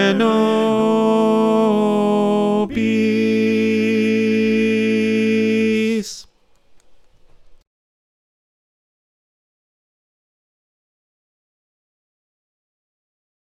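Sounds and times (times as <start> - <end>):
tenor singing: 0.0 - 6.3.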